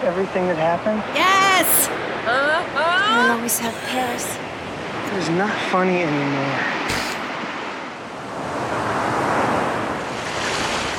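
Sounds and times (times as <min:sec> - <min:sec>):
speech: 0:00.1 - 0:06.8
surf washing onto a beach: 0:08.3 - 0:10.9.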